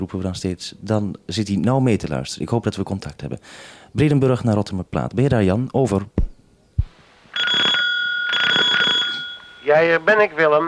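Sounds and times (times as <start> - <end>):
speech: 0.0 - 6.2, 9.7 - 10.6
push bell ringing: 7.4 - 10.0.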